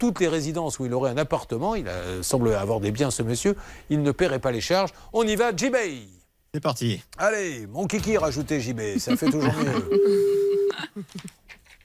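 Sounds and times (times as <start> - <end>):
speech: 0.0 - 11.4
laughter: 9.0 - 10.1
telephone ringback tone during an outgoing call: 9.6 - 10.8.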